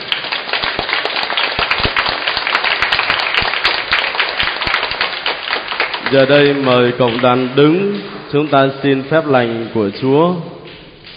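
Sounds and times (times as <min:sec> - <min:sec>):
audience applause: 0:00.0 - 0:08.2
speech: 0:06.1 - 0:10.5.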